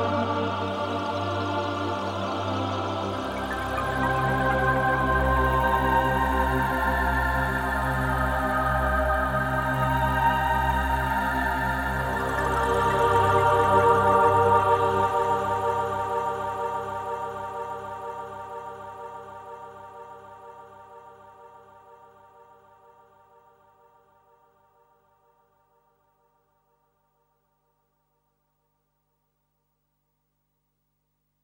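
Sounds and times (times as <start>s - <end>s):
Kurzweil PC3 synthesizer: 0.0s - 24.5s.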